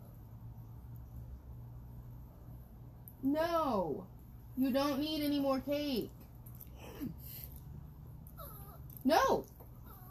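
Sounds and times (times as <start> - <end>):
speech: 3.2 - 6.2, 9.0 - 9.5
Chihuahua whining: 8.2 - 10.1.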